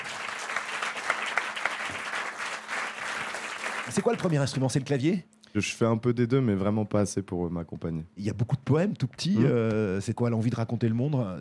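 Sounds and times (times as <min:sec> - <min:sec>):
audience clapping: 0:00.0 - 0:05.0
speech: 0:03.9 - 0:11.3.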